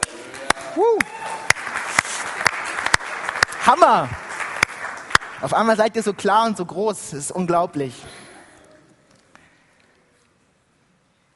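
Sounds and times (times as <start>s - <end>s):
room full of people applauding: 0.0s - 6.2s
person whooping: 0.6s - 1.5s
speech: 0.8s - 1.2s, 3.7s - 4.2s, 5.4s - 8.2s.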